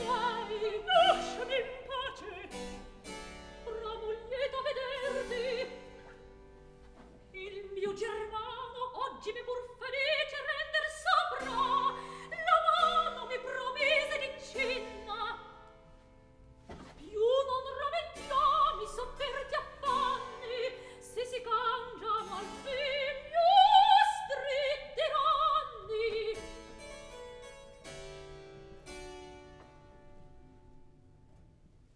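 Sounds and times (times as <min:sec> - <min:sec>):
opera recitative: 0:00.0 - 0:03.0, 0:03.6 - 0:06.2, 0:07.3 - 0:15.6, 0:16.9 - 0:26.6.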